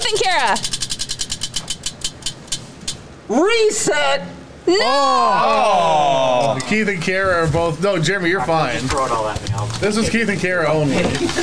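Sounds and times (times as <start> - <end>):
spinning prize wheel ticking during a game: 0.0 - 2.6
speech: 0.3 - 0.8, 3.3 - 11.4.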